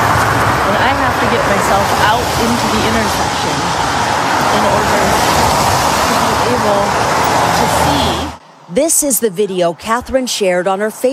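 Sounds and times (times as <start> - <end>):
cars zipping by at 77th and Woodstock: 0.0 - 8.8
speech: 1.3 - 3.9, 4.5 - 5.4, 6.5 - 11.1.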